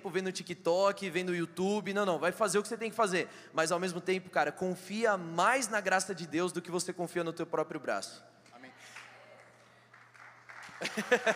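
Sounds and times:
speech: 0:00.0 - 0:08.3, 0:10.8 - 0:11.3
low electrical hum: 0:00.0 - 0:11.3
scattered applause: 0:08.9 - 0:11.3
laughter: 0:10.8 - 0:11.3.

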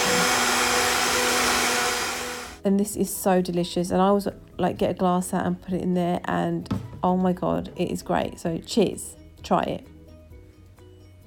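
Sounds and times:
blender mixing a smoothie at high speed: 0:00.0 - 0:02.6
speech: 0:02.6 - 0:09.9.

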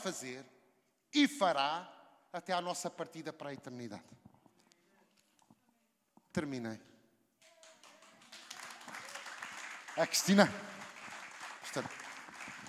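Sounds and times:
speech: 0:00.0 - 0:04.2, 0:06.3 - 0:06.9, 0:10.0 - 0:10.8, 0:11.7 - 0:12.0
enthusiastic applause: 0:07.4 - 0:12.6.

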